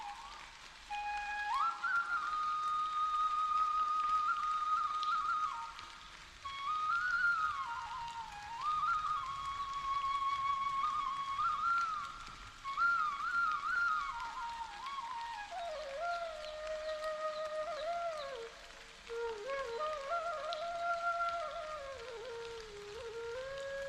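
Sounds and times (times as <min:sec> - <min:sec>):
flute playing: 0:00.0 - 0:23.8
rain: 0:00.0 - 0:23.8.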